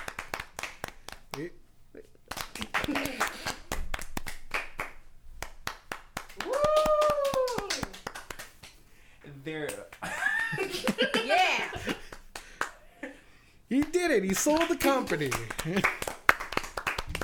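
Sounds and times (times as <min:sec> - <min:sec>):
hand clapping: 0:00.0 - 0:01.5, 0:02.3 - 0:08.9, 0:09.5 - 0:10.2, 0:10.8 - 0:12.9, 0:13.7 - 0:17.2
speech: 0:01.4 - 0:02.1, 0:14.2 - 0:16.0
person exclaiming loudly: 0:06.4 - 0:07.9.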